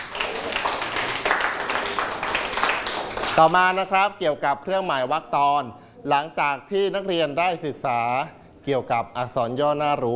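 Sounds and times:
group applauding: 0.0 - 3.9
speech: 3.4 - 10.1.

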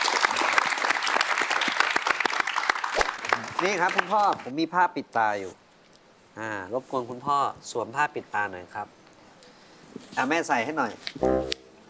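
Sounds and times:
audience applause: 0.0 - 4.4
speech: 3.6 - 5.6, 6.4 - 9.0, 10.2 - 11.5.

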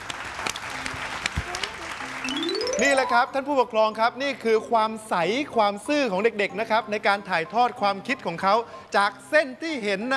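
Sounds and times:
children clapping in a drawing class: 0.0 - 3.2
speech: 2.8 - 10.1.

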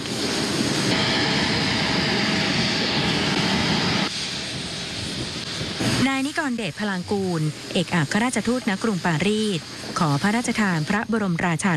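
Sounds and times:
airliner jet engines roaring at airport: 0.0 - 11.7
speech: 6.5 - 11.7.

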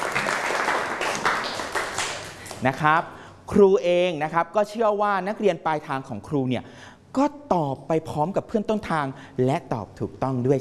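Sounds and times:
students in a class clapping for themselves: 0.0 - 2.7
speech: 2.6 - 10.5.

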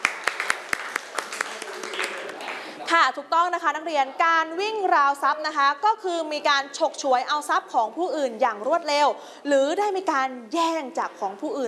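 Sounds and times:
students clapping during a Thai classroom lesson: 0.0 - 2.8
speech: 2.9 - 11.6.

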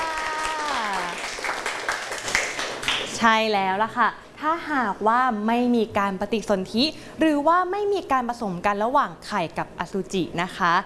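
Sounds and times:
group applauding in a classroom: 0.0 - 3.2
speech: 3.2 - 10.8.

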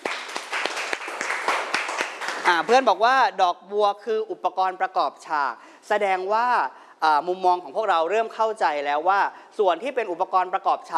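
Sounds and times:
classroom of students clapping in a Thai art lesson: 0.0 - 2.8
speech: 2.5 - 10.9.

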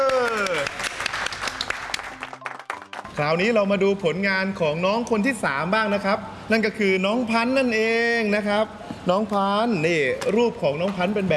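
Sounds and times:
applause after the showing of a child's artwork: 0.0 - 3.2
speech: 3.2 - 11.3.

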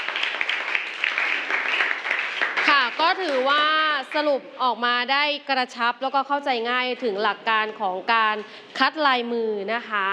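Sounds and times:
applause: 0.0 - 4.3
speech: 3.1 - 10.1.

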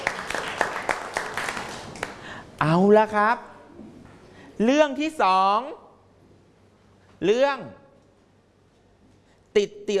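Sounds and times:
students in a class clapping for themselves: 0.0 - 2.3
speech: 2.6 - 3.5, 4.6 - 5.8, 7.2 - 7.8, 9.6 - 9.9.

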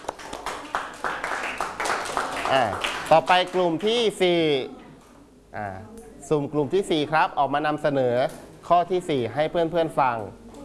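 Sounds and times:
group of students clapping: 0.0 - 3.6
speech: 2.5 - 4.8, 5.5 - 10.4.

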